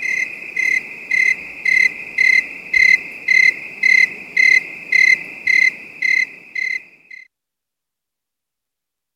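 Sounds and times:
crickets trilling at night: 0.0 - 7.3.

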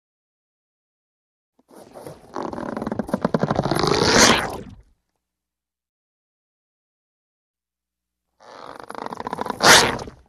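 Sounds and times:
processed rubber stretching: 1.6 - 4.8, 8.4 - 10.2.

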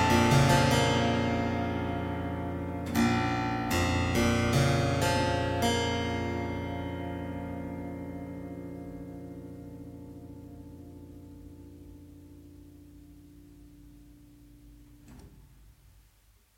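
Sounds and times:
harpsichord prelude: 0.0 - 12.6.

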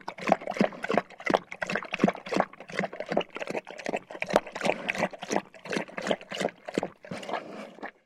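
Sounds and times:
dog drinking water from bowl: 0.0 - 8.0.

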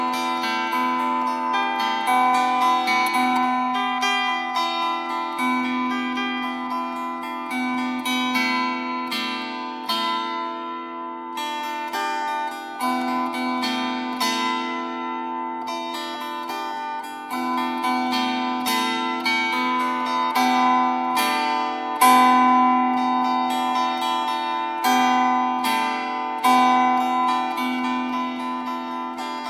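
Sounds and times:
improvisation on a Welsh plucked cruit: 0.0 - 29.4.

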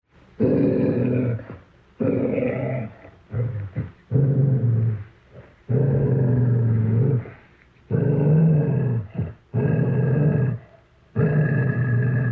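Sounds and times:
dog growling: 0.4 - 12.3.

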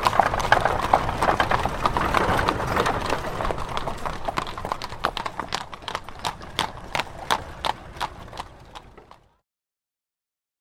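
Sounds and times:
horse hooves clopping: 0.0 - 9.4.

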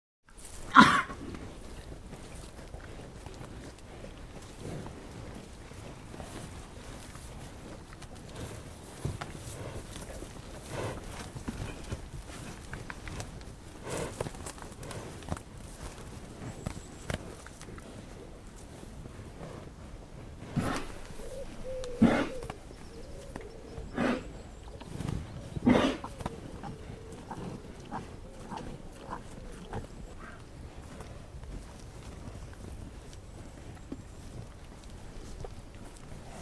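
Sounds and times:
cows milling in: 0.3 - 36.4
cows coughing: 0.6 - 1.3, 20.6 - 22.6, 23.9 - 24.4, 25.6 - 30.4.

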